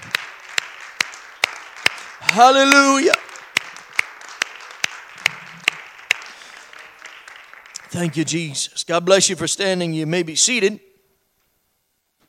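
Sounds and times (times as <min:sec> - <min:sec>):
audience clapping hands: 0:00.0 - 0:08.7
speech: 0:02.3 - 0:03.2, 0:08.0 - 0:10.9.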